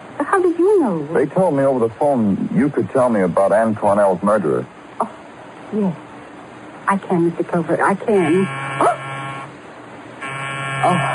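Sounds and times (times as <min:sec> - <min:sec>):
speech: 0:00.2 - 0:06.0, 0:06.9 - 0:09.0, 0:10.8 - 0:11.1
doorbell buzzing: 0:08.1 - 0:09.6, 0:10.2 - 0:11.1.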